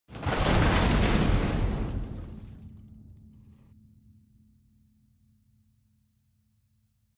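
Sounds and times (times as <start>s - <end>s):
long metal pieces in metal industry: 0.1s - 2.9s.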